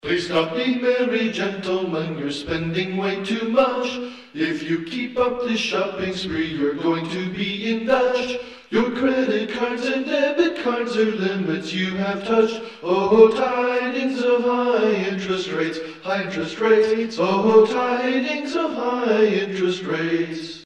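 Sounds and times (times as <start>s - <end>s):
a cappella singing: 0.0s - 20.6s.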